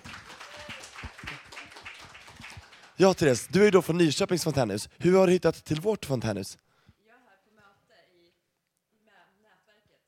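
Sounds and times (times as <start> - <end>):
audience applause: 0.0 - 3.8
speech: 3.0 - 6.7.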